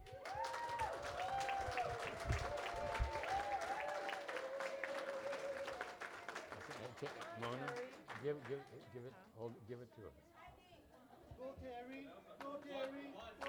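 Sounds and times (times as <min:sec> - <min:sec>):
audience applause welcoming an award recipient: 0:00.0 - 0:08.6
speech: 0:07.0 - 0:10.3, 0:11.4 - 0:13.4.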